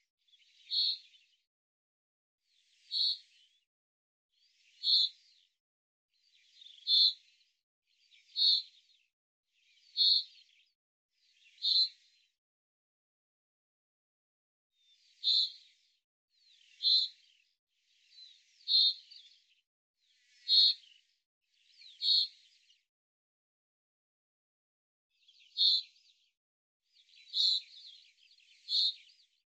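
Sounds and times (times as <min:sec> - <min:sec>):
bird chirps: 0:00.0 - 0:01.4, 0:02.7 - 0:03.6, 0:04.5 - 0:05.4, 0:06.3 - 0:07.3, 0:08.0 - 0:09.0, 0:09.6 - 0:10.7, 0:11.3 - 0:12.2, 0:15.0 - 0:15.8, 0:16.4 - 0:17.4, 0:18.0 - 0:19.6, 0:20.2 - 0:22.8, 0:25.2 - 0:26.3, 0:27.0 - 0:29.4.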